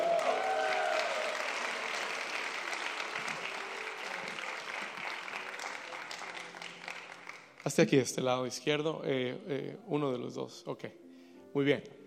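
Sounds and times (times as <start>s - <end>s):
applause: 0.0s - 8.0s
speech: 7.7s - 11.0s, 11.6s - 12.0s.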